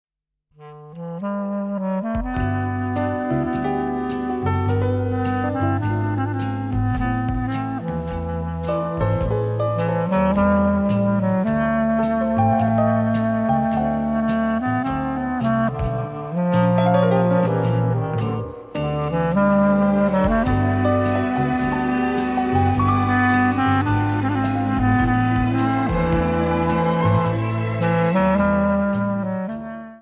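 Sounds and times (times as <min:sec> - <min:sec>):
clarinette d'amour: 0:00.6 - 0:29.9.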